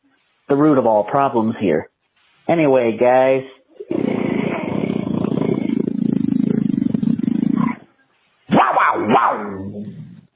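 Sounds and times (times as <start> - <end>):
speech: 0.5 - 1.9, 2.5 - 4.1
deep growl with slow bellow: 3.8 - 7.9, 9.5 - 10.3.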